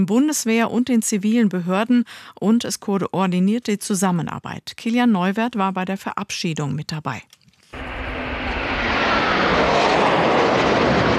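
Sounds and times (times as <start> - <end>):
speech: 0.0 - 7.4
two Eurofighter jets flying low over Schloss Schleißheim: 7.8 - 11.1.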